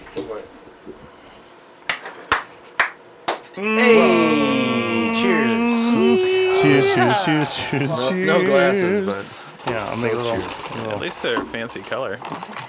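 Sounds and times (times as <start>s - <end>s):
hand claps for audio sync: 1.9s - 3.5s
speech: 3.6s - 4.2s, 6.6s - 12.6s
laughter: 3.6s - 9.4s.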